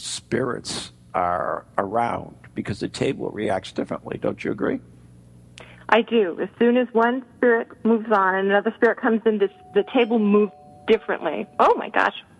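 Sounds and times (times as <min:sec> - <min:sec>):
speech: 0:00.3 - 0:05.0, 0:05.9 - 0:12.3
doorbell ringing: 0:09.5 - 0:12.1.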